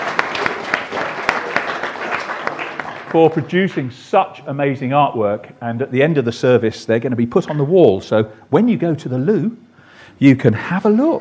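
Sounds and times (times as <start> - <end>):
church congregation giving a round of applause: 0.0 - 4.0
speech: 3.1 - 11.2.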